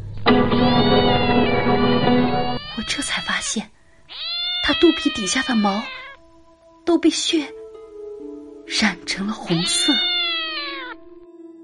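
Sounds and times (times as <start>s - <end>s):
cat meowing: 0.3s - 6.2s, 9.4s - 11.1s
speech: 2.9s - 3.8s, 4.7s - 6.0s, 6.9s - 7.6s, 8.7s - 10.1s.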